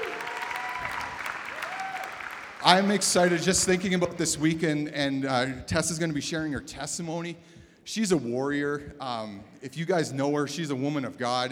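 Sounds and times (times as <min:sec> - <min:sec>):
crowd applauding: 0:00.0 - 0:04.3
speech: 0:02.6 - 0:11.5.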